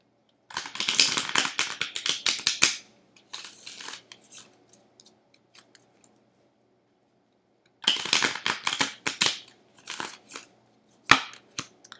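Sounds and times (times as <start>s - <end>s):
tarot cards being shuffled and drawn: 0.6s - 4.5s, 7.9s - 10.5s.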